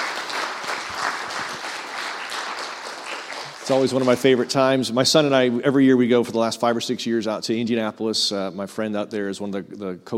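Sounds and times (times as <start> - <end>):
audience applause: 0.0 - 4.5
speech: 3.7 - 10.1.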